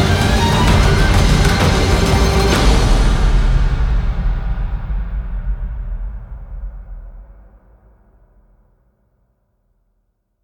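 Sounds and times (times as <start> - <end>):
orchestral action music: 0.0 - 5.4.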